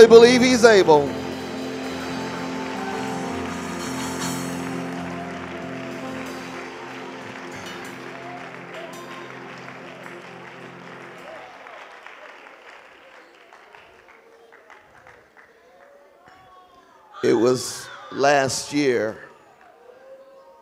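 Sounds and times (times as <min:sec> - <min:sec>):
speech: 0:00.0 - 0:01.2, 0:17.4 - 0:19.3
audience clapping hands: 0:01.1 - 0:16.6.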